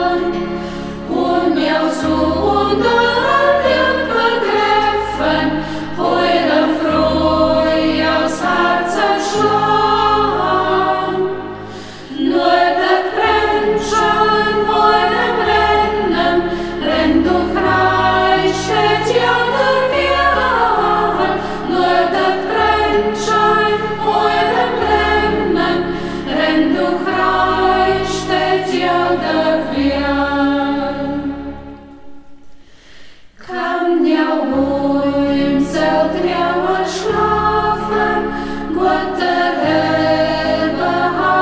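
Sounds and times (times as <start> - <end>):
choir singing in local dialect: 0.0 - 32.4, 33.4 - 41.3.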